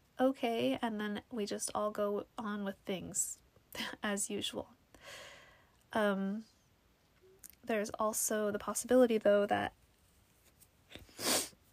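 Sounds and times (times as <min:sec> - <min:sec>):
speech: 0:00.2 - 0:05.3, 0:05.9 - 0:06.5, 0:07.6 - 0:09.8
person sniffling: 0:11.0 - 0:11.6.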